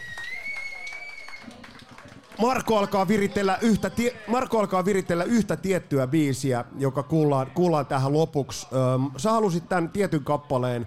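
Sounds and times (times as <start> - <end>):
audience applause: 0.0 - 3.9
speech: 2.4 - 10.8.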